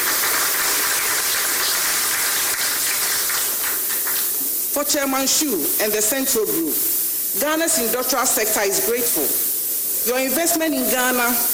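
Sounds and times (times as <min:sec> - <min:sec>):
audience applause: 0:00.0 - 0:04.4
speech: 0:04.8 - 0:11.5.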